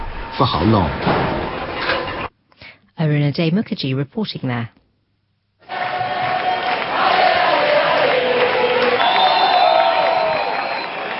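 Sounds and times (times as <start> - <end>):
speech: 0.4 - 1.2, 3.0 - 4.8
large crowd of protesters in Spain over the housing crisis: 5.6 - 11.1.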